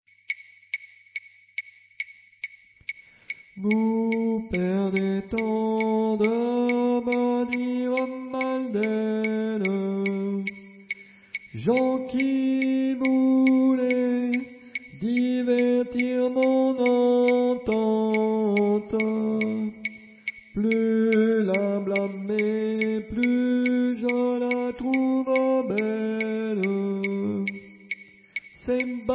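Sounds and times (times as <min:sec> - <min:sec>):
soprano singing: 0:03.6 - 0:10.6, 0:11.6 - 0:19.9, 0:20.5 - 0:27.7.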